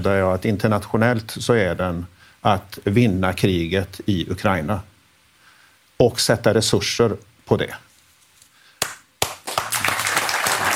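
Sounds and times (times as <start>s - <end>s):
speech: 0.0s - 4.9s, 6.0s - 7.9s
spontaneous applause: 8.8s - 10.7s.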